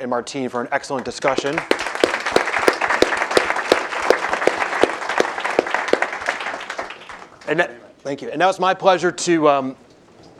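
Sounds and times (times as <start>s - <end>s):
speech: 0.0s - 1.9s, 7.5s - 9.8s
audience applause after a panel discussion: 1.3s - 7.6s.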